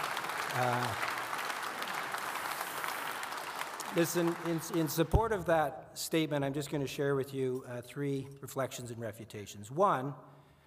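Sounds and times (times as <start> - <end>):
audience clapping: 0.0 - 5.6
speech: 0.6 - 1.1, 3.9 - 10.4.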